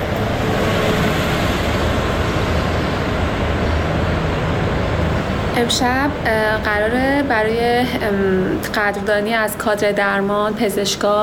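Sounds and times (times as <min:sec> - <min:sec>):
bus passing by outside: 0:00.0 - 0:10.5
road noise: 0:00.0 - 0:11.2
speech: 0:05.6 - 0:11.2.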